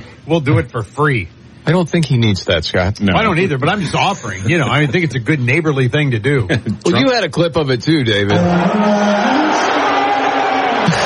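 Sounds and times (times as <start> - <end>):
speech: 0.3 - 9.7
crowd cheering: 8.3 - 11.0.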